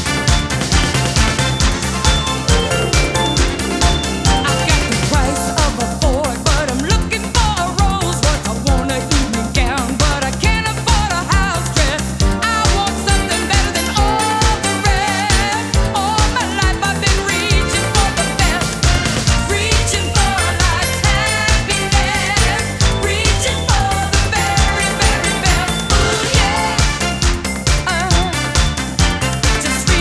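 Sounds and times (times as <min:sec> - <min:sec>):
disco music: 0:00.0 - 0:29.9.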